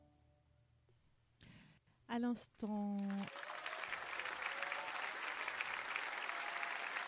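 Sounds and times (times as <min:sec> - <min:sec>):
speech: 0:02.1 - 0:03.4
live concert applause: 0:03.2 - 0:07.0.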